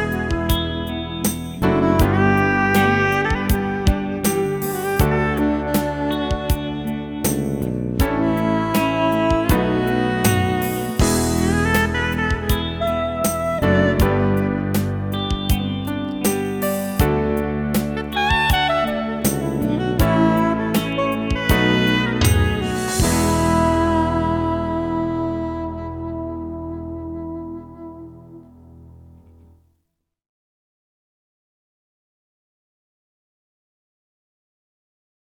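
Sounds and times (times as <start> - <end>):
rock funk music: 0.0 - 26.7.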